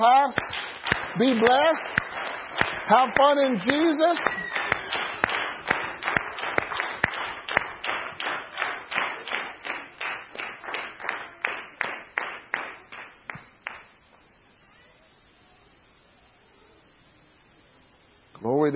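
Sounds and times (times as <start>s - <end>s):
speech: 0.0s - 2.0s, 2.9s - 4.5s
audience clapping in a steady rhythm: 0.0s - 14.2s.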